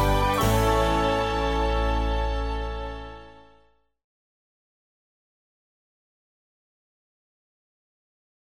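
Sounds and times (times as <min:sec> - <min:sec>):
easy listening and classical music: 0:00.0 - 0:03.6.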